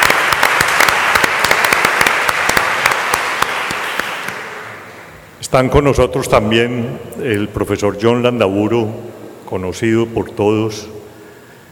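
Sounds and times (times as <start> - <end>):
welcoming applause: 0.0 - 4.8
speech: 5.4 - 11.0.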